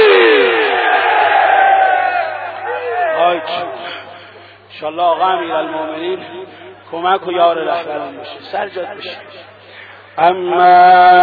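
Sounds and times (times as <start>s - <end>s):
crowd shouting a Heydari battle cry Ya Ali: 0.0s - 3.9s
speech: 4.8s - 9.5s, 10.2s - 11.2s.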